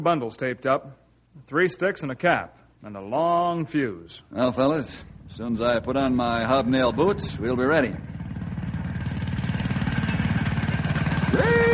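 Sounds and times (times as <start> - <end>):
speech: 0.0 - 8.2
approaching railway handcar: 6.8 - 11.7.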